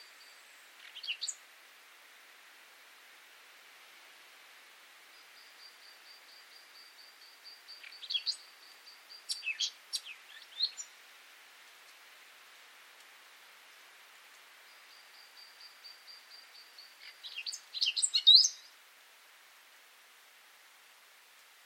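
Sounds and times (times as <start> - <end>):
Eurasian blackcap singing scratchy warbling and fluty whistled phrase: 0.0 - 1.4, 5.4 - 11.0, 14.7 - 18.8.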